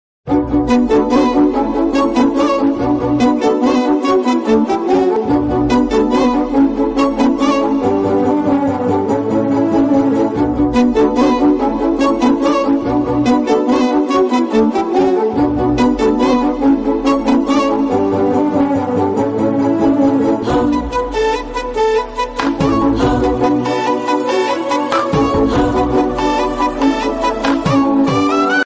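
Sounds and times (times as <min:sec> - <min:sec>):
background music ringtone: 0:00.3 - 0:28.6.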